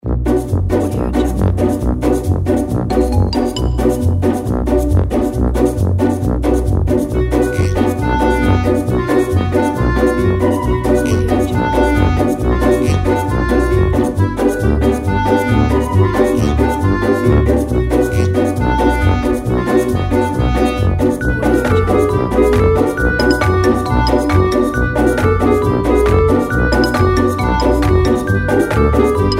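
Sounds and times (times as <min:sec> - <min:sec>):
funny comedy music: 0:00.0 - 0:29.3.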